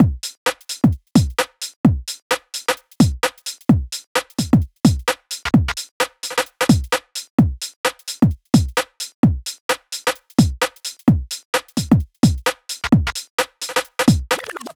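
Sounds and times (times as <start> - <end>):
UK garage drum beat at 130 bpm: 0.0 - 14.7.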